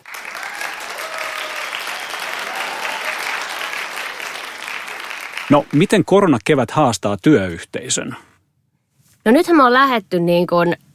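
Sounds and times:
applause: 0.0s - 6.1s
speech: 5.5s - 8.3s, 9.2s - 10.8s.

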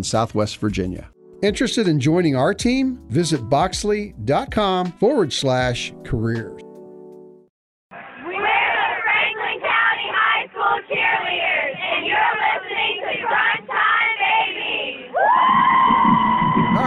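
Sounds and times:
speech: 0.0s - 6.7s
crowd cheering: 7.9s - 16.8s
cheerleaders chanting: 8.0s - 15.3s.

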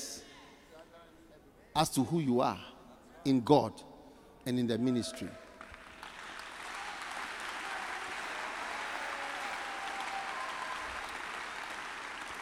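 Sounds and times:
speech: 1.8s - 5.4s
audience clapping: 5.2s - 12.4s.

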